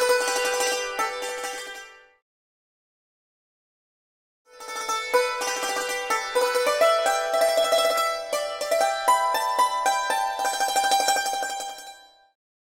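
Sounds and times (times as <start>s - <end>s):
Asian yangqin hammered dulcimer: 0.0s - 2.0s, 4.5s - 12.1s.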